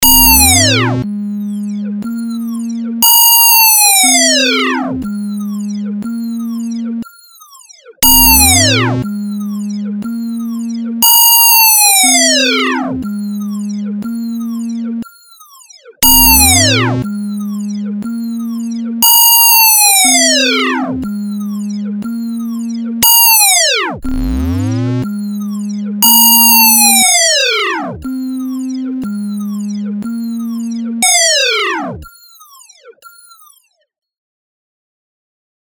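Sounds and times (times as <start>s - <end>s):
sine wave tone: 0.0s - 7.4s, 8.0s - 15.4s, 16.0s - 32.4s.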